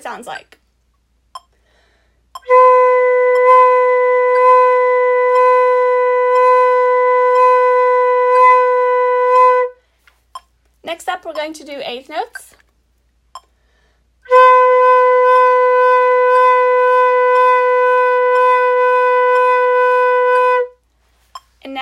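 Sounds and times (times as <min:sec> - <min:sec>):
vibrato tone: 0:02.4 - 0:09.7, 0:14.3 - 0:20.7.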